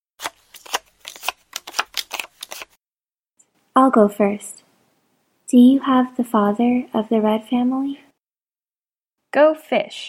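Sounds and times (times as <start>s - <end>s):
playing cards being dealt for Happy Families: 0.2s - 2.8s
speech: 3.8s - 4.6s, 5.5s - 8.0s, 9.3s - 10.0s.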